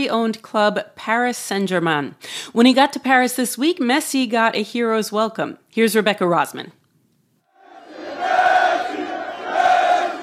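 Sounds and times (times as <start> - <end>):
speech: 0.0 - 6.8
fans screaming and chanting at airport: 7.5 - 10.2.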